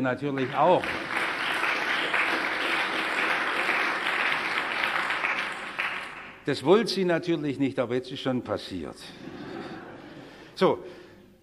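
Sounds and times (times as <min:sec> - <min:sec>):
speech: 0:00.0 - 0:01.2, 0:06.4 - 0:09.3, 0:10.6 - 0:11.0
audience applause: 0:00.4 - 0:06.4.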